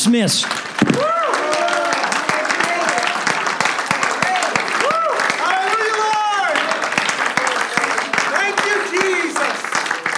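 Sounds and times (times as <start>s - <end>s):
speech: 0.0s - 1.2s
audience clapping: 0.0s - 10.1s.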